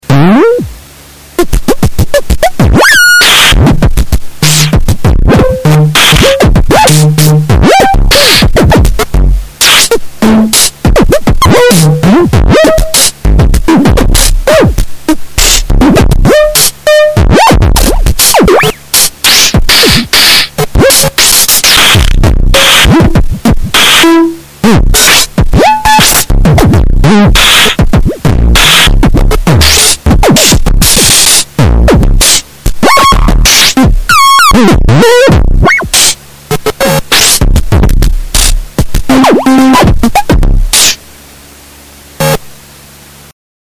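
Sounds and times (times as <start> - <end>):
heavily crunched distorted sound: 0.0 - 43.3.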